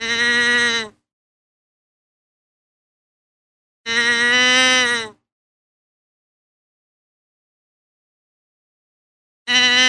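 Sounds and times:
deer bleating: 0:00.0 - 0:01.0, 0:03.9 - 0:05.2, 0:09.5 - 0:09.8.

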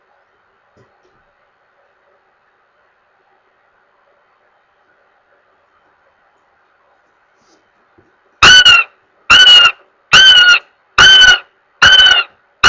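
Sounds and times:
goshawk giving harsh level wailing notes: 0:08.4 - 0:12.6.

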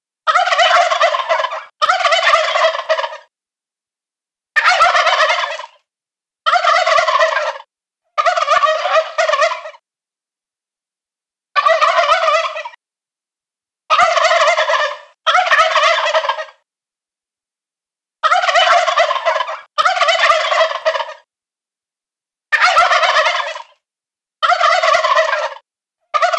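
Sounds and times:
adult male wild turkey gobbling: 0:00.3 - 0:03.3, 0:04.6 - 0:05.8, 0:06.5 - 0:09.8, 0:11.6 - 0:12.8, 0:13.9 - 0:16.6, 0:18.2 - 0:21.3, 0:22.5 - 0:23.8, 0:24.4 - 0:26.3.

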